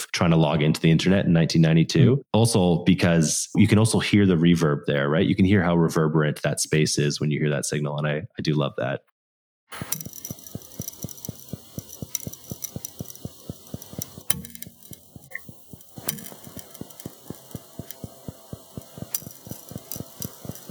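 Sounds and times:
speech: 0.2 - 9.1, 9.7 - 10.2
glass cracking under deep-sea pressure: 9.8 - 20.6.

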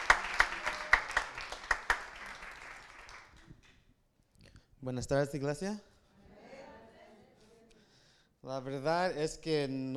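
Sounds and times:
audience applause: 0.0 - 3.5
speech: 4.8 - 5.9, 8.5 - 9.9.

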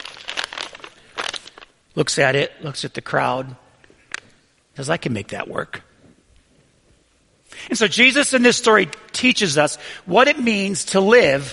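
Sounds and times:
paper lunch bag crinkling: 0.0 - 1.8
speech: 2.0 - 3.6, 4.8 - 5.9, 7.7 - 11.5.

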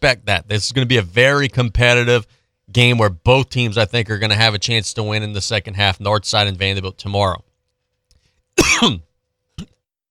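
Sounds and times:
speech: 0.0 - 7.5, 8.6 - 9.7
person coughing after choking on saliva: 8.6 - 9.8.

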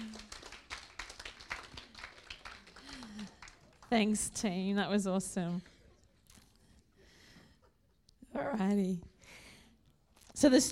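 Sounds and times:
clapping: 0.0 - 4.1
speech: 3.9 - 5.7, 8.6 - 9.1, 10.4 - 10.7.

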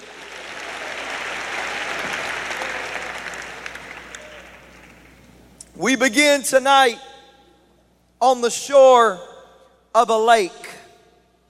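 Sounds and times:
audience clapping: 0.0 - 5.2
speech: 5.8 - 7.1, 8.2 - 9.3, 10.0 - 10.7.

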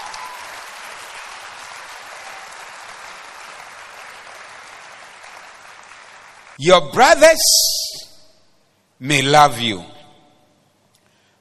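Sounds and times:
audience clapping: 0.0 - 6.6
speech: 6.6 - 8.0, 9.0 - 9.9.

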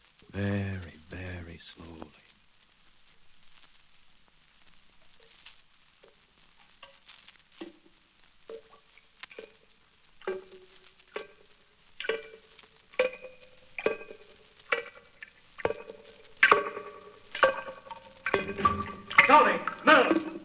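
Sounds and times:
speech: 0.3 - 0.9, 1.6 - 2.2
amplified dripping water tap: 6.0 - 20.4.

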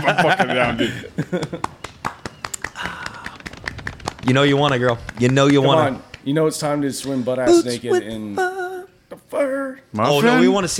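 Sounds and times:
laughter: 0.0 - 1.8
speech: 0.0 - 1.8, 4.3 - 8.5, 9.3 - 10.7
soft polite golf clap: 1.4 - 6.4.

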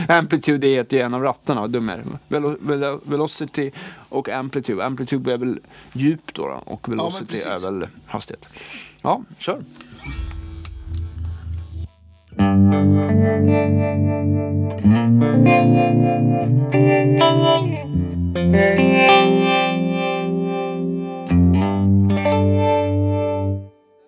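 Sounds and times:
speech: 0.0 - 10.3, 12.6 - 19.6
electric guitar playing sustained chords through a modulation effect: 9.6 - 23.8.

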